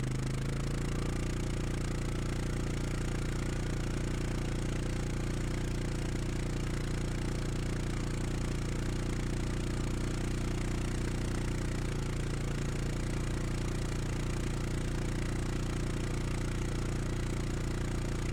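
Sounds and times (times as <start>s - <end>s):
ATV engine exhaust at steady RPMs, starting and driving: 0.1s - 18.3s.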